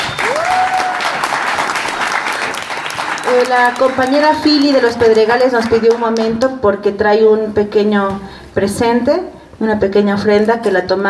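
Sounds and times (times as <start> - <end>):
person whistling: 0.0 - 0.7
audience clapping: 0.0 - 6.6
speech: 3.4 - 11.0.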